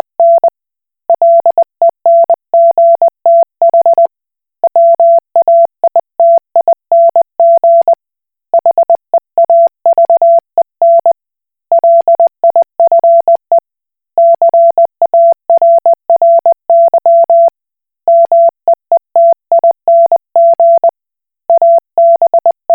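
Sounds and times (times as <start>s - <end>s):
Koch Morse code beeps: 0.2s - 0.5s, 1.2s - 4.1s, 4.7s - 7.9s, 8.6s - 13.4s, 14.2s - 17.5s, 18.1s - 18.5s, 19.2s - 20.9s, 21.5s - 22.7s.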